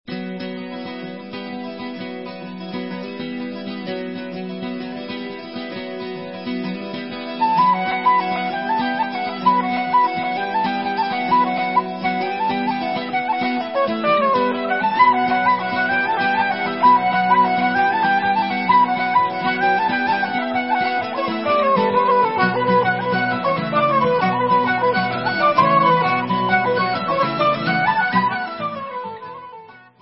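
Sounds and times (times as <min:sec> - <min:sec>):
Celtic festival instrumental music: 0:00.7 - 0:29.9.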